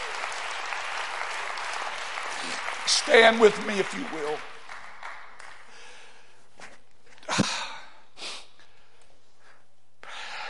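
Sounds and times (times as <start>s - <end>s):
audience clapping hands: 0.0s - 6.2s
speech: 2.9s - 4.5s.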